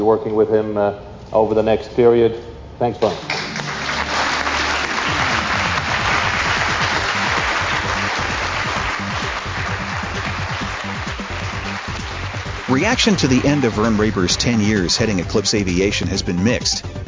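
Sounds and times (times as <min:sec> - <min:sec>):
speech: 0:00.0 - 0:03.4, 0:12.7 - 0:17.0
room of aviation reporters applauding: 0:03.3 - 0:15.0.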